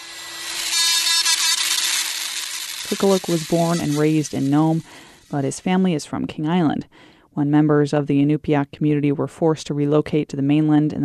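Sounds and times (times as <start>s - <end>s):
small power drill boring tiny holes into walrus ivory tooth: 0.0s - 5.7s
speech: 2.9s - 11.0s.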